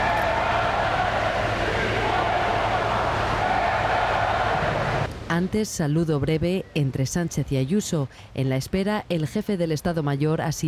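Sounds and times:
crowd booing and jeering: 0.0s - 5.1s
speech: 5.4s - 10.6s.

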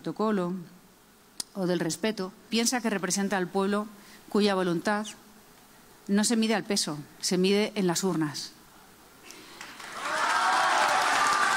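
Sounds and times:
speech: 0.0s - 0.8s, 1.6s - 5.2s, 6.1s - 8.6s
audience applause: 9.5s - 11.5s.

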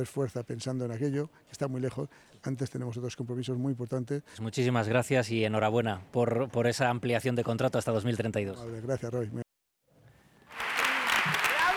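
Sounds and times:
speech: 0.0s - 9.4s
audience applauding at San Sebastián for a film: 10.4s - 11.7s.

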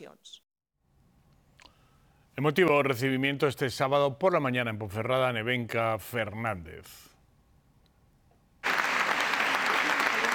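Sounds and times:
speech: 2.4s - 7.1s
long applause at a public welcome in Ponferrada: 8.6s - 10.3s.

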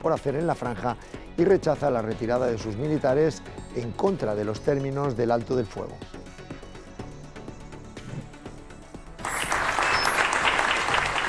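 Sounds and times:
speech: 0.0s - 6.2s
steady rhythmic beat with sharp regular clicks: 0.0s - 11.2s
loud dense applause: 9.2s - 11.2s.

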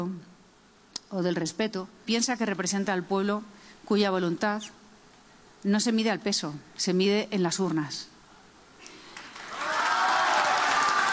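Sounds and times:
speech: 1.1s - 4.8s, 5.6s - 8.1s
audience applause: 9.1s - 11.1s.

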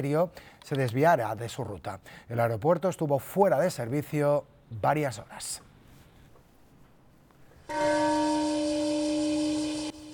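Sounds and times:
speech: 0.0s - 5.7s
Peace bell ringing in Hiroshima: 7.7s - 10.1s.

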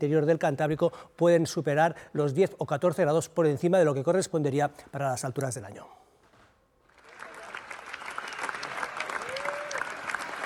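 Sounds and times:
speech: 0.0s - 6.0s
standing ovation applause at film screening in Cannes: 6.9s - 10.4s.

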